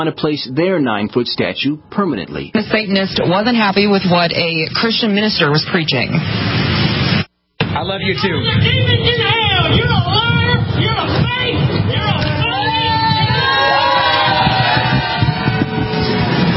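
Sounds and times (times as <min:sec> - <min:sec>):
speech: 0:00.0 - 0:06.7, 0:07.8 - 0:11.7
displeased crowd shouting and jeering at a rally: 0:11.0 - 0:16.5
high-pitched yells: 0:12.4 - 0:15.9.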